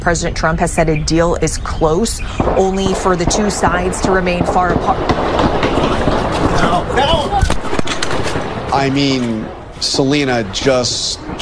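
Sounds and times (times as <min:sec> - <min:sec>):
speech: 0:00.0 - 0:06.0, 0:06.6 - 0:07.6, 0:08.7 - 0:11.2
gunfire: 0:02.2 - 0:09.4.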